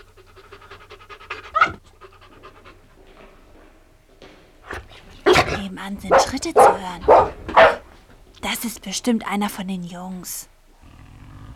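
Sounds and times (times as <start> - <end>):
dog panting and huffing: 0.0 - 8.2
dog barking: 1.5 - 1.8, 4.7 - 8.0
speech: 5.6 - 7.4, 8.4 - 10.5.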